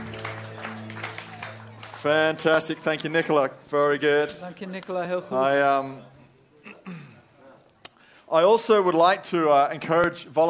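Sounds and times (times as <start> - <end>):
audience applauding the band: 0.0 - 3.2
speech: 2.0 - 6.2, 8.3 - 10.4.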